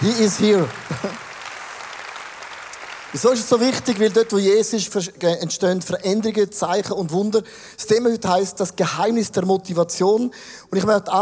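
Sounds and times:
speech: 0.0 - 1.2, 3.1 - 11.2
audience applause: 0.0 - 4.7
laughter: 0.7 - 1.3.

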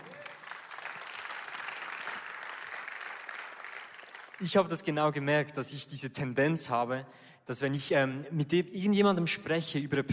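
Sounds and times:
audience applause: 0.0 - 4.4
speech: 4.4 - 10.1.

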